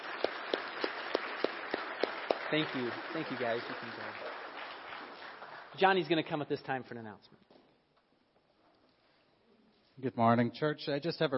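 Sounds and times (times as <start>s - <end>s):
round of applause from church audience: 0.0s - 6.5s
speech: 2.5s - 4.4s, 5.8s - 7.5s, 10.0s - 11.3s.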